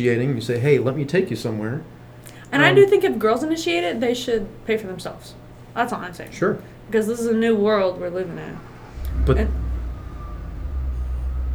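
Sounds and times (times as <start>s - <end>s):
speech: 0.0s - 9.6s
truck engine passing close behind building: 8.1s - 11.5s.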